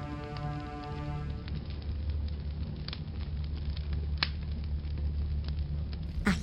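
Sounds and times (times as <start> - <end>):
back garden fire crackling and hissing: 0.0 - 6.4.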